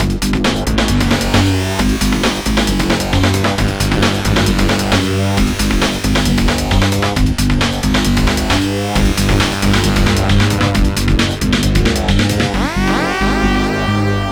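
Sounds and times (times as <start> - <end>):
hardcore breakbeat trancefunk music: 0.0 - 14.3.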